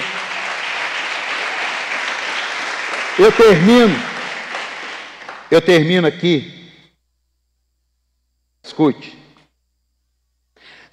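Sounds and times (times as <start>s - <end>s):
audience applause: 0.0s - 5.5s
speech: 3.2s - 4.1s, 5.5s - 6.6s, 8.7s - 9.2s.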